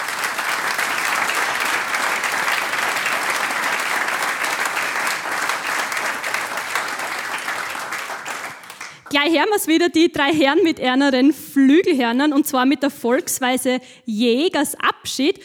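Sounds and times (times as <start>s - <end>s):
audience applause: 0.0s - 9.2s
speech: 9.2s - 15.4s.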